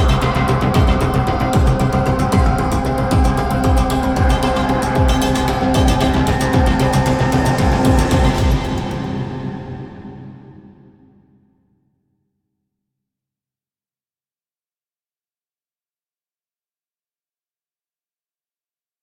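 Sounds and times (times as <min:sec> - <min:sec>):
cinematic music: 0:00.0 - 0:11.1.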